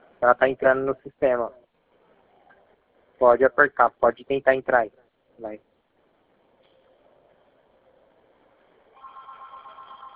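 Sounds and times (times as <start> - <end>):
speech: 0.2 - 1.6, 3.2 - 5.7
telephone ringing: 9.0 - 10.1.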